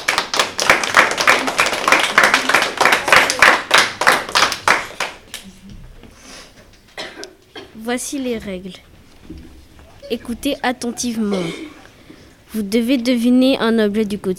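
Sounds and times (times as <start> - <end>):
audience applauding: 0.0 - 5.4
speech: 7.9 - 11.7, 12.5 - 14.3.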